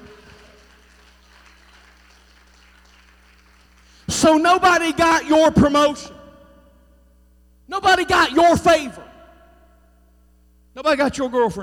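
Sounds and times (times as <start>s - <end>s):
audience hand clapping: 0.0s - 4.1s
speech: 4.2s - 6.2s, 7.8s - 9.0s, 10.8s - 11.6s.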